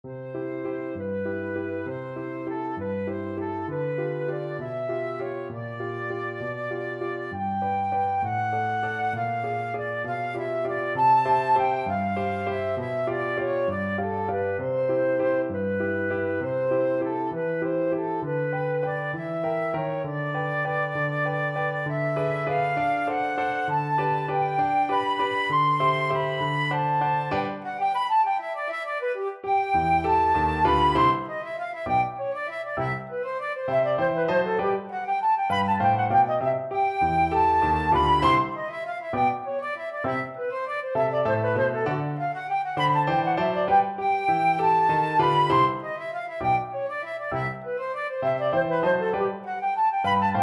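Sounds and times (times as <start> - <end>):
oboe playing a waltz: 0.1 - 50.4.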